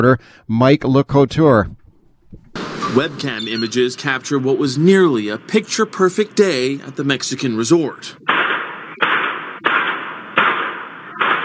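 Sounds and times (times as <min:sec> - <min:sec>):
speech: 0:00.0 - 0:01.8, 0:02.6 - 0:08.5
gunshots: 0:02.5 - 0:11.4.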